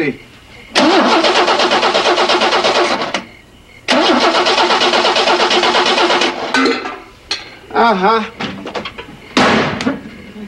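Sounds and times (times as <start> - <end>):
speech: 0.0 - 0.3, 7.8 - 8.5
car engine with an empty fuel tank cranking without starting: 0.8 - 3.3, 3.9 - 6.6.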